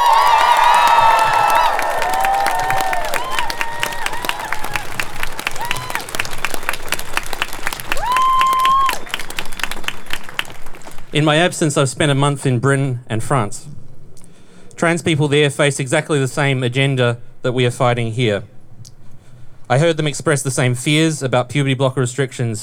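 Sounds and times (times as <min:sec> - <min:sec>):
crowd cheering and applauding: 0:00.0 - 0:11.4
speech: 0:11.2 - 0:13.7, 0:14.8 - 0:18.5, 0:19.7 - 0:22.6.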